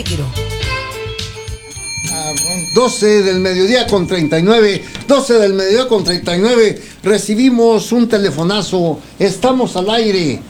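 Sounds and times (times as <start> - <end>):
speech: 0.0 - 0.5, 2.2 - 10.4
bell sound effect: 0.4 - 8.8
sung radio jingle: 1.4 - 7.5.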